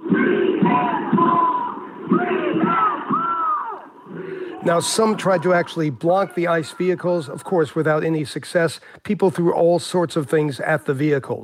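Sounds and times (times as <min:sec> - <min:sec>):
protest crowd chanting in unison: 0:00.0 - 0:05.8
speech: 0:04.6 - 0:11.4.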